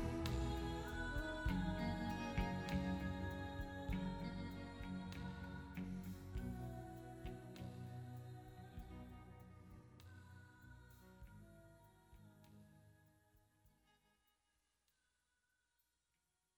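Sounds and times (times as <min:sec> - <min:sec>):
person singing: 0:00.0 - 0:09.3.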